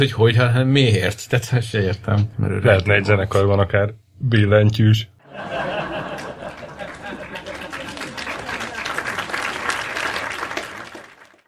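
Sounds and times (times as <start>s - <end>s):
speech: 0.0s - 5.7s
laughter: 5.2s - 9.1s
burst of applause from a crowd: 5.3s - 11.4s.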